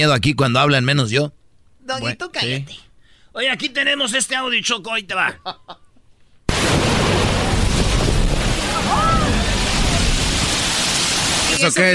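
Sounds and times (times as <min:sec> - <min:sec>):
speech: 0:00.0 - 0:05.8, 0:11.6 - 0:11.9
laughter: 0:05.2 - 0:06.0
sea blowhole spouting with rushing water and spray: 0:06.5 - 0:11.8
crashing waves: 0:06.5 - 0:11.9.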